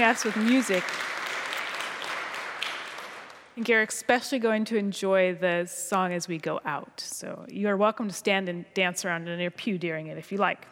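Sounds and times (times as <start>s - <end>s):
speech: 0.0s - 1.2s, 3.6s - 10.7s
audience applauding: 0.0s - 3.6s.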